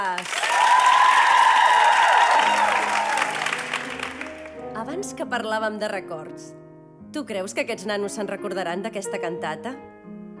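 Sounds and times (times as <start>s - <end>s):
big round of applause: 0.0s - 4.6s
speech: 5.2s - 9.9s.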